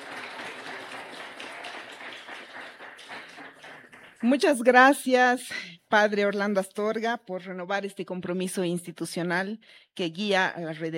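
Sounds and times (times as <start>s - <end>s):
applause: 0.0s - 5.1s
speech: 4.2s - 10.9s.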